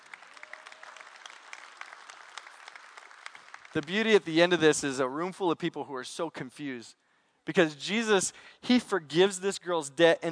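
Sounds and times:
audience clapping: 0.0s - 4.6s
speech: 3.8s - 10.3s.

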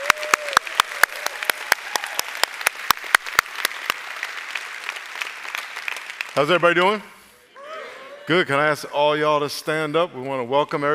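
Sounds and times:
church congregation applauding: 0.0s - 7.1s
speech: 6.4s - 7.2s, 8.3s - 10.9s.

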